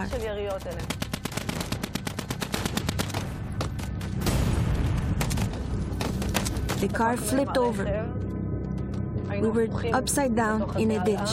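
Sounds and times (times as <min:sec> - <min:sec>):
speech: 0:00.0 - 0:01.0, 0:06.8 - 0:08.2, 0:09.4 - 0:11.3
gunshots: 0:00.2 - 0:07.0.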